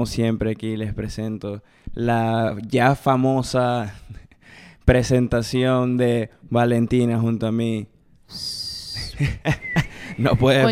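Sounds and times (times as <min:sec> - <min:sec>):
speech: 0:00.0 - 0:08.6, 0:09.2 - 0:10.7
failed attempt at whistling: 0:08.3 - 0:10.7
laughter: 0:09.1 - 0:10.7.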